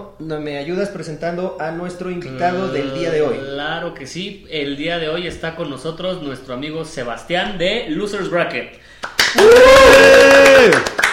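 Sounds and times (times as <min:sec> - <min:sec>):
speech: 0:00.2 - 0:11.0
sustained voiced cry: 0:02.2 - 0:03.8
hosts clapping hands: 0:09.0 - 0:11.1.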